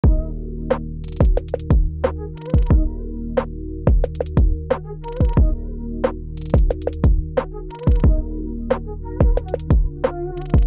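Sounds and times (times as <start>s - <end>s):
trap beat: 1.0s - 2.9s, 3.9s - 5.4s, 6.4s - 8.2s, 9.2s - 10.6s.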